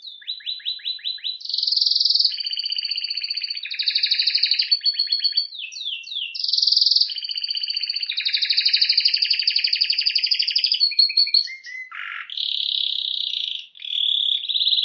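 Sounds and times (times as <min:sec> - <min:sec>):
canary singing: 0:00.0 - 0:14.8.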